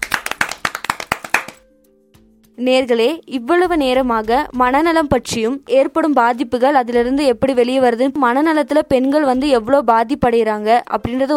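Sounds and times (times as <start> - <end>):
audience clapping for a student's project: 0.0 - 1.6
speech: 2.6 - 11.3.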